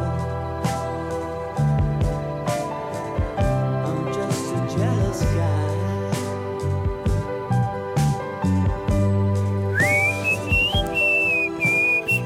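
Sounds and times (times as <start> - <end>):
instrumental music with low bass line: 0.0 - 12.2
high-pitched human whistling: 9.8 - 12.2.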